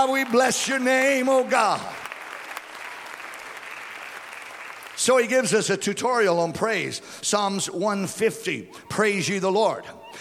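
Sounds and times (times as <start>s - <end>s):
speech: 0.0s - 2.0s, 5.0s - 10.1s
congregation clapping in praise during a church service: 0.0s - 5.8s.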